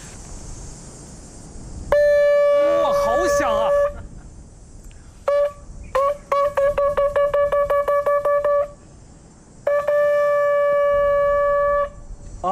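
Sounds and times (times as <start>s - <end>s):
mouth-blown horn call: 1.9s - 4.0s, 5.2s - 8.8s, 9.6s - 12.0s.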